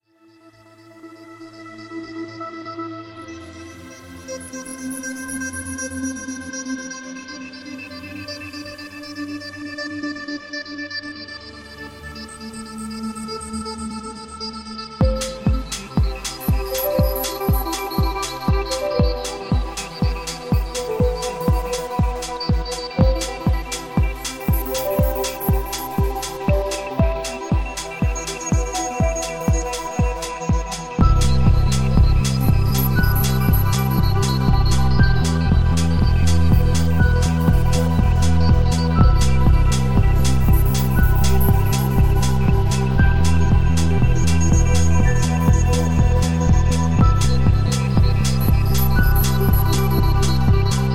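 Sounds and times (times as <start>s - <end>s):
club beats: 15.0s - 50.9s.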